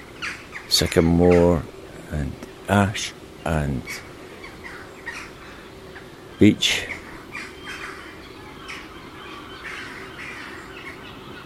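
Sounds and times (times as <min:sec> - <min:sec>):
seagulls calling: 0:00.0 - 0:01.6, 0:03.5 - 0:11.4
other birds calling: 0:00.0 - 0:11.4
steady low hum: 0:00.0 - 0:11.4
speech: 0:00.7 - 0:04.1, 0:06.4 - 0:07.0.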